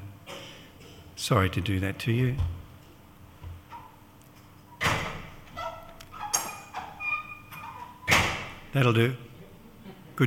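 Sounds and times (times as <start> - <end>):
speech: 1.2 - 2.6, 8.7 - 9.3
door being closed: 4.8 - 8.7.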